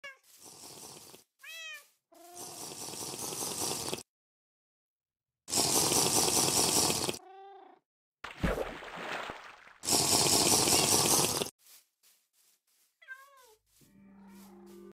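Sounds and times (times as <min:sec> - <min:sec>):
person drinking water: 0:00.4 - 0:01.3, 0:02.4 - 0:04.0, 0:05.5 - 0:07.2, 0:08.8 - 0:11.5.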